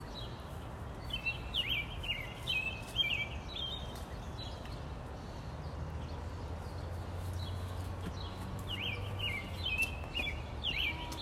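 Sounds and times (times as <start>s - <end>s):
birds in DC: 0.0s - 11.2s.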